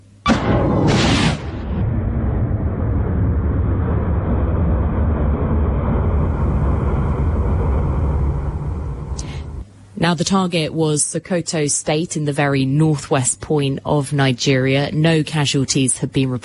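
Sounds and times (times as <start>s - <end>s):
missile launched from a military vessel: 0.2s - 9.6s
speech: 10.1s - 16.4s.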